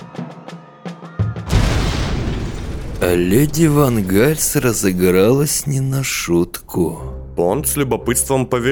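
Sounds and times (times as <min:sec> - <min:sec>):
sharp bangs: 0:01.5 - 0:07.3
bomb explosion: 0:01.5 - 0:07.4
speech: 0:03.0 - 0:08.7.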